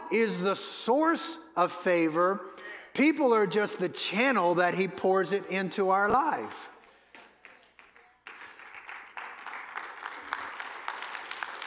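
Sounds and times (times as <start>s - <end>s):
speech: 0.1s - 6.7s
audience applause: 7.4s - 11.6s.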